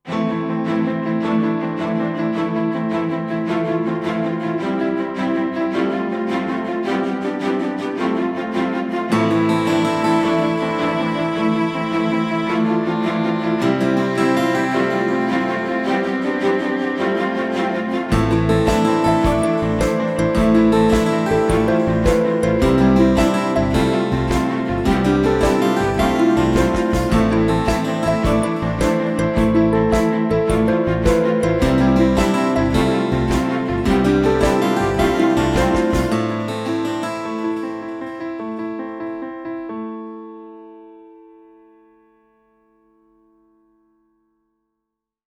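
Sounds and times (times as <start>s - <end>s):
uplifting music: 0.1s - 38.1s.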